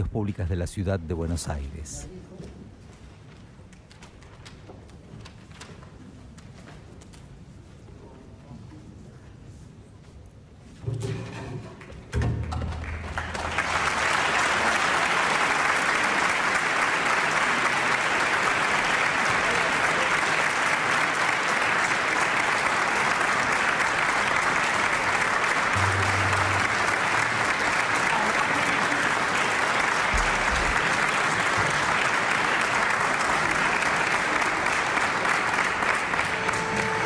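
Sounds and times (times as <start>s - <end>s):
speech: 0.0s - 2.2s
audience applause for musician entering stage: 12.5s - 37.0s.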